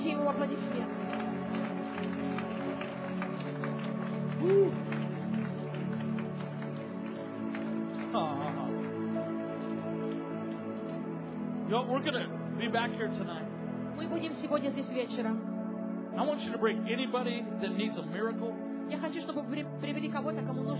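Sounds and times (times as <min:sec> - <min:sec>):
crowd hand clapping: 0:00.0 - 0:12.1
speech: 0:00.3 - 0:01.0, 0:11.7 - 0:13.4, 0:14.0 - 0:15.5, 0:16.2 - 0:20.7.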